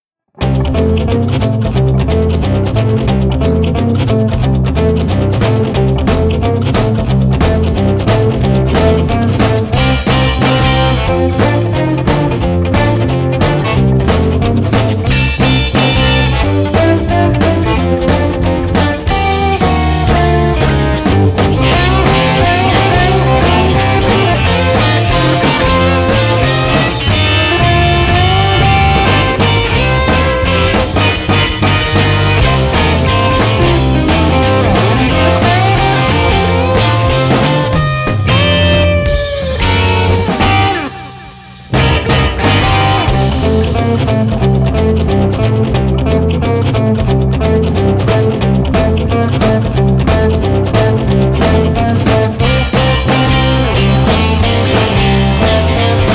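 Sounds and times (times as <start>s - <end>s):
jumping blues rock music: 0.4s - 56.1s.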